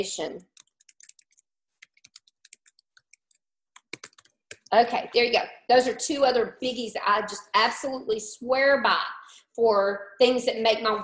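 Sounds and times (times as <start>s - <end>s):
speech: 0.0s - 0.6s, 4.7s - 11.0s
typing on a computer keyboard: 0.4s - 4.7s.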